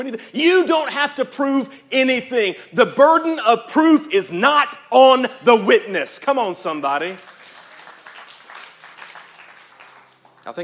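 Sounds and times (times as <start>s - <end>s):
speech: 0.0s - 7.4s, 10.4s - 10.6s
crowd applauding: 7.0s - 10.6s.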